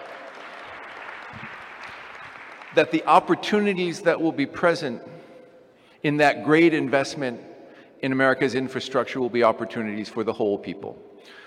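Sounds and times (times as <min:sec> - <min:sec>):
audience applause: 0:00.0 - 0:03.2
speech: 0:02.8 - 0:05.1, 0:06.0 - 0:11.4.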